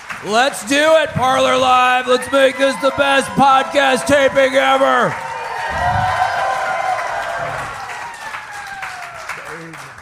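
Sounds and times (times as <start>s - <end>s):
speech: 0.2s - 6.0s
live audience cheering with whoops and shouts: 0.2s - 10.0s.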